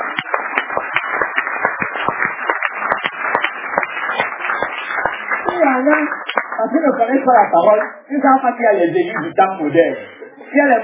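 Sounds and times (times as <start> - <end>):
audience applause: 0.0 - 7.9
speech: 5.6 - 10.8.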